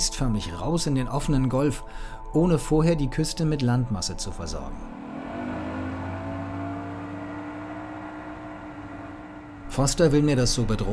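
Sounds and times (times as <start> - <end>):
speech: 0.0 - 5.1, 9.8 - 10.9
motorboat engine: 4.8 - 10.9.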